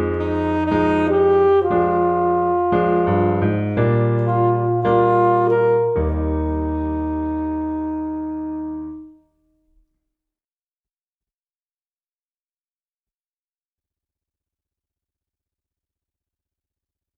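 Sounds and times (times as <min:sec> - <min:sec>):
multiple saxophones: 0:00.1 - 0:09.2.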